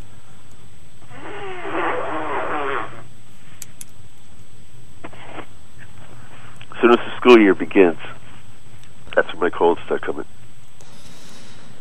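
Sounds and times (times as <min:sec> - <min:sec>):
nose blowing: 0:01.1 - 0:03.1
speech: 0:06.8 - 0:08.1, 0:09.4 - 0:10.4.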